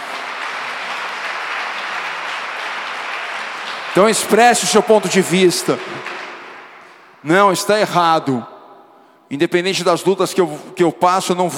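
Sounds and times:
audience applause: 0.0s - 7.2s
speech: 4.0s - 6.2s, 7.2s - 8.5s, 9.3s - 11.5s.

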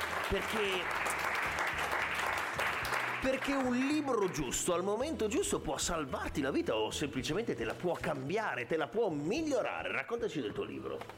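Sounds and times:
audience applause: 0.0s - 4.5s
speech: 0.3s - 1.0s, 3.2s - 11.1s.

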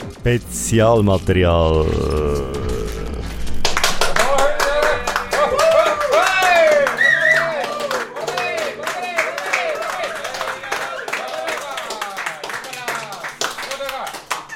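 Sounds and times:
speech: 0.2s - 2.6s
audience applause: 3.6s - 14.5s.

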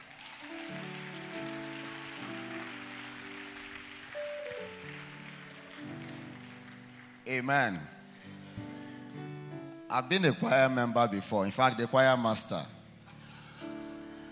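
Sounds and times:
audience clapping for the choir: 0.0s - 8.1s
speech: 7.3s - 7.9s, 9.9s - 12.8s.

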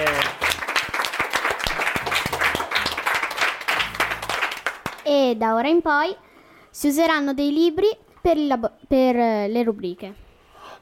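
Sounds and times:
applause: 0.0s - 5.1s
speech: 5.1s - 6.2s, 6.8s - 10.2s.

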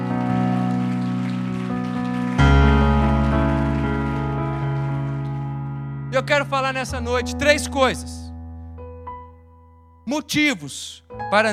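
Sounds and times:
audience applause: 0.0s - 5.8s
loud sustained keyboard chords: 0.0s - 10.4s, 11.0s - 11.5s
speech: 6.2s - 8.2s, 10.1s - 11.5s.

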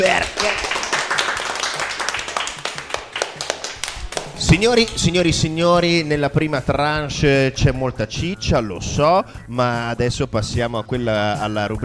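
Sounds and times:
small group applause: 0.0s - 5.0s
speech: 4.6s - 11.8s.

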